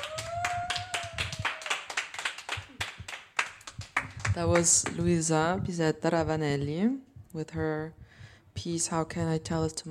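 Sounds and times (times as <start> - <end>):
audience clapping: 0.0 - 5.0
speech: 4.4 - 8.0, 8.6 - 9.8.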